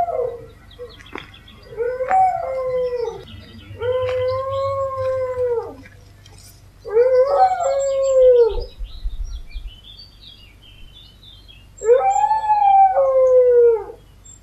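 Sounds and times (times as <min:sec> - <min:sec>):
dog howling: 0:00.0 - 0:01.0, 0:01.6 - 0:05.9, 0:06.8 - 0:08.7, 0:11.8 - 0:14.0.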